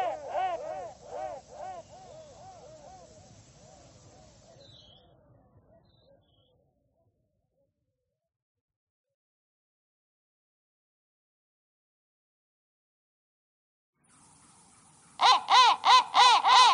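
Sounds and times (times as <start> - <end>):
crow calling: 0.0 - 3.2, 15.2 - 16.7.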